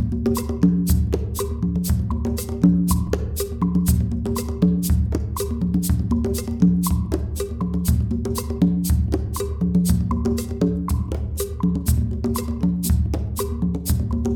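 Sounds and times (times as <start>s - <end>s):
kpanlogo percussion: 0.0s - 14.3s.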